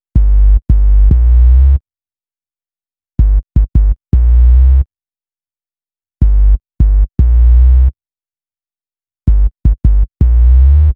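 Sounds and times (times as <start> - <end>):
hip-hop bass: 0.2 - 1.8, 3.2 - 4.8, 6.2 - 7.9, 9.3 - 10.9.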